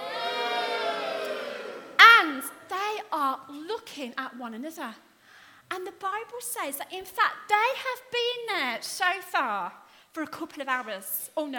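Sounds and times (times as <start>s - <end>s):
audience cheering: 0.0s - 2.0s
speech: 4.0s - 5.1s, 5.7s - 11.5s.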